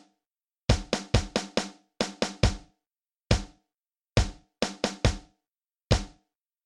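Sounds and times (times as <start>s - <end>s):
power rock drum set: 0.7s - 2.6s, 4.2s - 5.2s, 5.9s - 6.1s.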